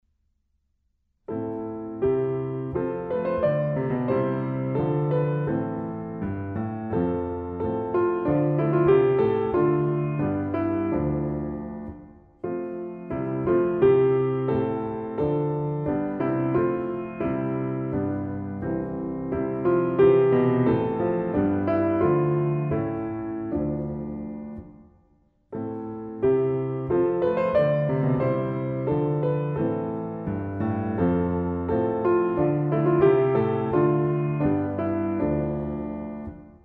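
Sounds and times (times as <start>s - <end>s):
solo piano folk songs: 1.3s - 24.7s, 25.6s - 36.6s.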